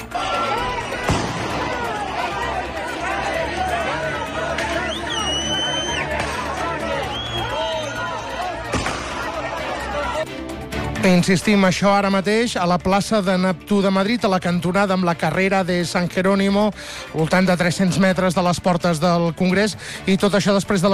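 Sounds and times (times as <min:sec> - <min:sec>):
large crowd shouting and roaring in a street riot: 0:00.0 - 0:12.0
sharp bangs: 0:01.0 - 0:01.8
shrill whistles: 0:04.7 - 0:06.1, 0:06.9 - 0:08.4
speech: 0:11.0 - 0:20.9.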